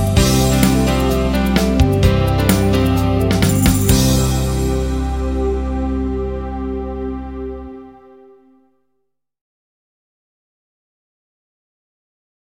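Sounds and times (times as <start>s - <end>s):
documentary background music: 0.0s - 8.9s.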